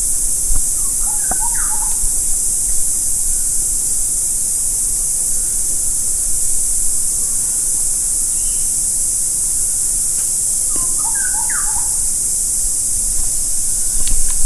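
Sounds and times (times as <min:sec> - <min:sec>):
constant high hiss: 0:00.0 - 0:14.4
bird chirping: 0:00.8 - 0:02.1, 0:10.7 - 0:12.0.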